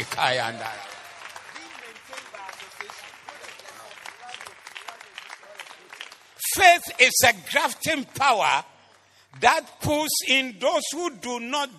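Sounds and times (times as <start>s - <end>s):
audience clapping: 0.0s - 9.9s
speech: 0.2s - 0.9s, 6.6s - 8.7s, 9.3s - 11.7s.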